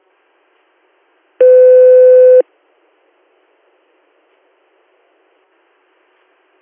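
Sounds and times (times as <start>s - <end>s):
weekly pager test tones: 1.4s - 2.4s.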